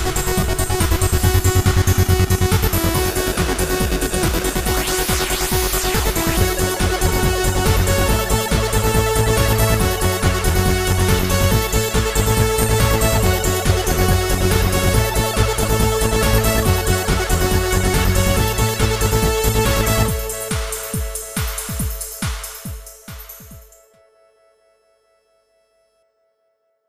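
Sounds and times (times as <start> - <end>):
MIDIbox SID synthesizer: 0.0 - 26.6.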